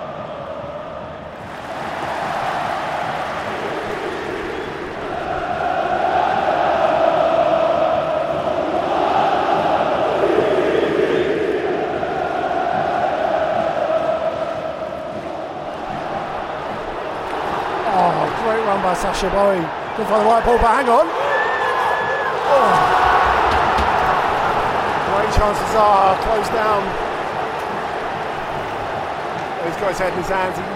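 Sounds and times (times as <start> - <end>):
football stadium crowd roaring: 0.0 - 30.7
speech: 19.0 - 21.3, 22.5 - 23.0, 25.2 - 27.0, 29.8 - 30.7.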